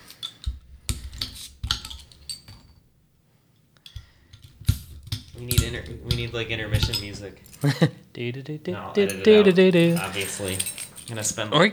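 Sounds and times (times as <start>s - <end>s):
keys on a keychain jingling: 5.4s - 7.8s, 9.0s - 11.5s
speech: 5.4s - 11.7s.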